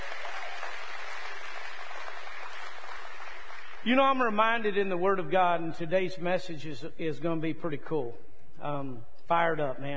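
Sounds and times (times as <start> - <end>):
audience clapping: 0.0 - 3.9
speech: 3.8 - 9.9.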